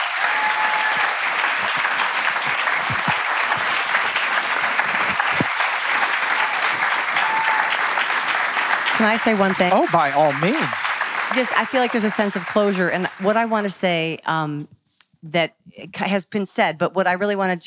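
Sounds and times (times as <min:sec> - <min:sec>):
audience applause: 0:00.0 - 0:13.7
speech: 0:09.0 - 0:17.6.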